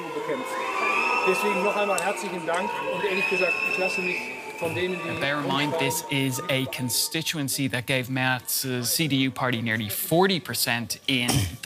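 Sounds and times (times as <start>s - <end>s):
crowd booing: 0.0s - 8.4s
speech: 1.2s - 11.6s.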